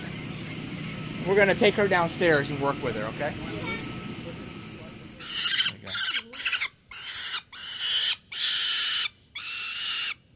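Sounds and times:
speech: 1.2s - 3.8s
young peregrine falcon screeching calls: 5.2s - 10.2s.

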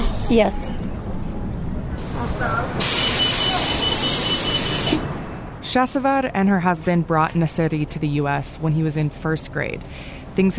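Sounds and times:
school bus low engine rumble: 0.0s - 10.5s
speech: 0.3s - 1.0s, 2.2s - 3.0s, 5.7s - 10.5s
school bus air brakes hissing: 2.0s - 5.1s.

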